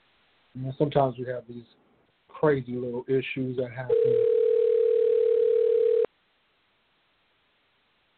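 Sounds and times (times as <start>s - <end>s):
speech: 0.6s - 1.8s, 2.4s - 4.4s
incoming phone call tone: 3.9s - 6.1s.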